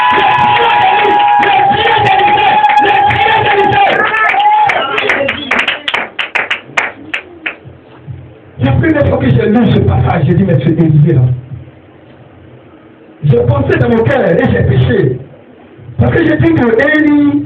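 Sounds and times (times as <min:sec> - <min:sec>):
church congregation cheering: 0:00.0 - 0:05.7
handclaps: 0:00.2 - 0:07.6
speech: 0:09.5 - 0:11.4, 0:13.6 - 0:15.2, 0:16.0 - 0:17.3.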